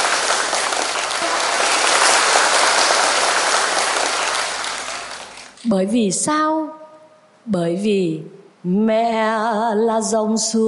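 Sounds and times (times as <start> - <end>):
crowd applauding: 0.0 - 5.6
speech: 5.7 - 6.8, 7.4 - 10.6.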